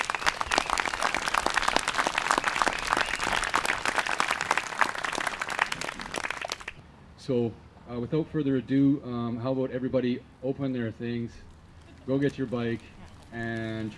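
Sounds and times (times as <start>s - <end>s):
audience applause at a bike project product launch: 0.0s - 6.8s
speech: 7.3s - 13.9s.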